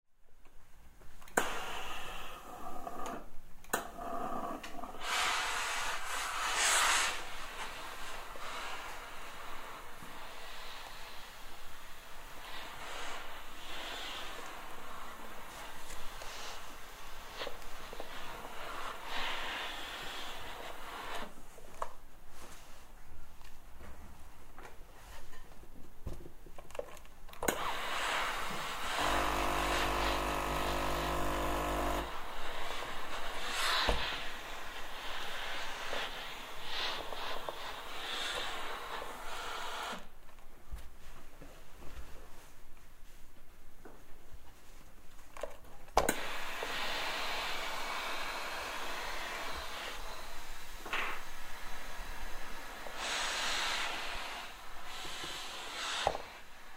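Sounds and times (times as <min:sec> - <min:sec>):
steam iron: 0:01.2 - 0:22.6, 0:27.4 - 0:40.2, 0:46.0 - 0:56.7.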